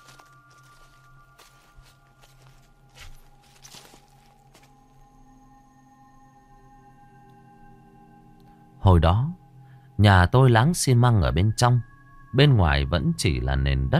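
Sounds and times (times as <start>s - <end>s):
footsteps, one foot stepping and one dragging, inside a house: 0.0s - 4.8s
speech: 8.9s - 9.4s, 10.0s - 13.9s.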